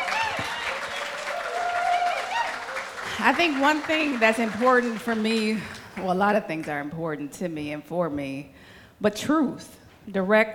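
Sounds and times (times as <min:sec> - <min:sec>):
faint cheers and whoops: 0:00.0 - 0:03.0
crowd applause: 0:00.0 - 0:06.1
speech: 0:03.2 - 0:10.5.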